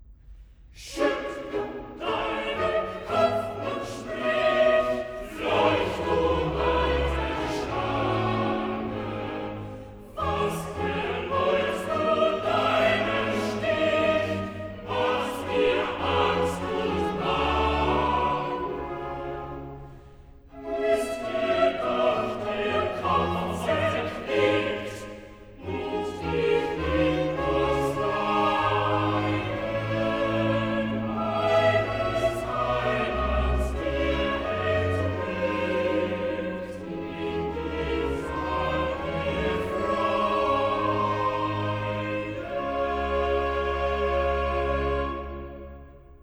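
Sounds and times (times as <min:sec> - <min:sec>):
choir singing: 0:00.8 - 0:46.2.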